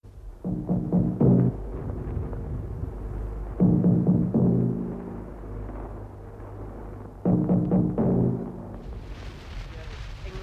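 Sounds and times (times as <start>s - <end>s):
radio station theme music: 0.4s - 1.7s, 3.6s - 5.8s, 7.2s - 9.3s.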